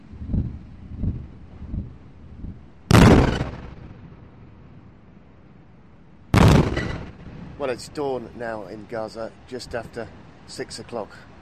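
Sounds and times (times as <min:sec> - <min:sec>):
heavy shelling blasts and airstrikes: 0:02.9 - 0:04.4, 0:06.3 - 0:07.9
speech: 0:07.6 - 0:11.3.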